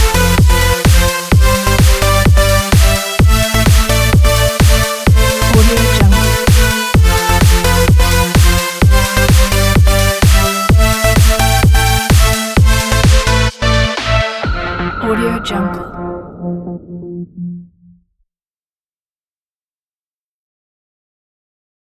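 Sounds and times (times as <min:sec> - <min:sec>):
energetic dance music: 0:00.0 - 0:17.0.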